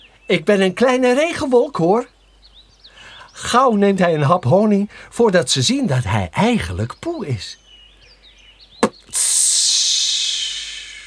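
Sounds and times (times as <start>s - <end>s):
speech: 0.3s - 2.1s, 3.4s - 7.6s
air escaping from an untied balloon: 8.8s - 11.0s.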